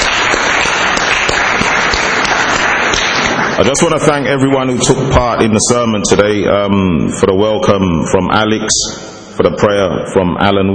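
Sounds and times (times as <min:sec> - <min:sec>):
audience round of applause: 0:00.0 - 0:04.2
speech: 0:03.6 - 0:10.7.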